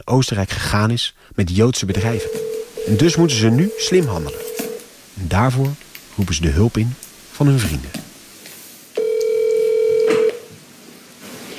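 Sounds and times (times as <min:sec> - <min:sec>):
speech: 0:00.0 - 0:04.4, 0:05.2 - 0:08.0
telephone line ringing: 0:01.9 - 0:04.9, 0:09.0 - 0:10.4.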